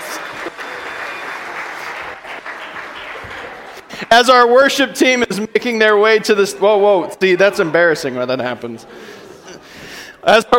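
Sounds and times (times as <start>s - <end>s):
audience applause: 0.0s - 4.5s
speech: 4.1s - 9.1s, 10.2s - 10.5s.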